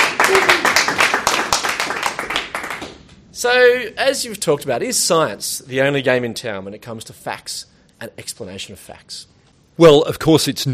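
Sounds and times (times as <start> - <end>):
audience applauding: 0.0 - 3.0
speech: 3.4 - 10.7.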